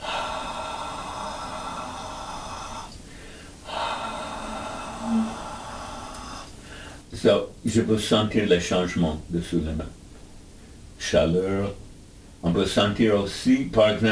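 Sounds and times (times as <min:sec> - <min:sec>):
long airy exhalations in a Yuki breathing exercise: 0:00.0 - 0:07.1
speech: 0:07.2 - 0:10.0, 0:11.0 - 0:11.8, 0:12.4 - 0:14.1.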